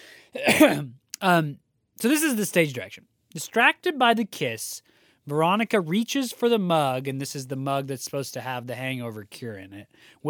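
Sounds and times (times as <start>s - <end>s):
person coughing: 0.4s - 1.0s
speech: 0.4s - 10.2s.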